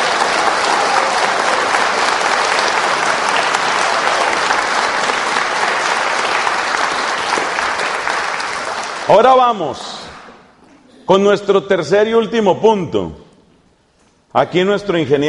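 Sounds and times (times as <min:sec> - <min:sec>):
audience applause: 0:00.0 - 0:10.4
speech: 0:09.1 - 0:10.0, 0:11.1 - 0:13.2, 0:14.3 - 0:15.2.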